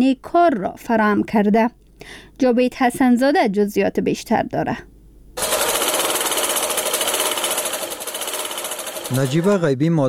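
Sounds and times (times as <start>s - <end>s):
speech: 0.0s - 5.5s, 9.1s - 10.0s
sewing machine running in a handicraft workshop in Kabul: 5.4s - 9.6s.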